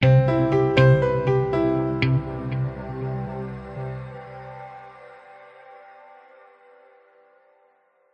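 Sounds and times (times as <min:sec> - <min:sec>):
happy bright corporate muted piano audio logo: 0:00.0 - 0:05.3.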